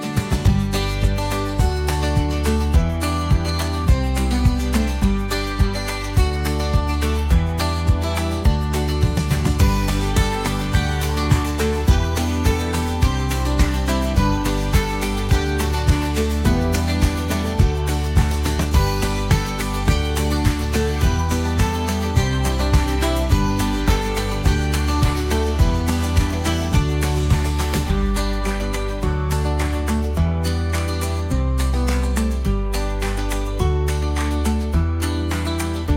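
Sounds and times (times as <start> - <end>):
children's music: 0.1 - 35.9.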